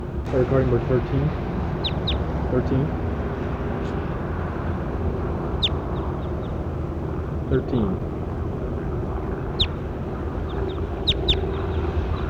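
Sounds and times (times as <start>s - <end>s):
steady rushing noise: 0.0s - 12.2s
speech: 0.3s - 1.5s, 2.5s - 3.0s, 7.5s - 8.1s
bird chirps: 10.5s - 11.8s.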